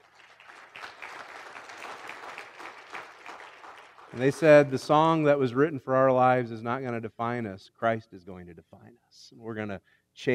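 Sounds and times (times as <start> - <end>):
audience applause: 0.0 - 4.8
speech: 4.1 - 10.3.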